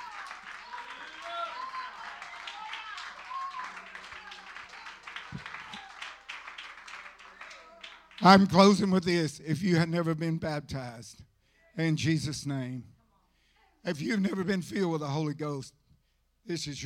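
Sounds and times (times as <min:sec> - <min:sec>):
audience clapping: 0:00.0 - 0:08.8
speech: 0:08.2 - 0:12.9, 0:13.8 - 0:15.8, 0:16.4 - 0:16.8.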